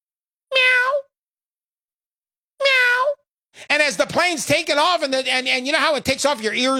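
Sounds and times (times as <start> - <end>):
person imitating cat meowing: 0.5 - 1.2, 2.6 - 3.3
speech: 3.6 - 6.7.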